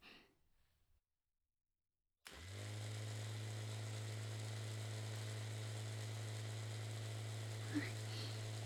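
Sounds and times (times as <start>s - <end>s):
electric massager: 2.3s - 8.6s
electronic ear cleaning noise: 2.3s - 8.6s.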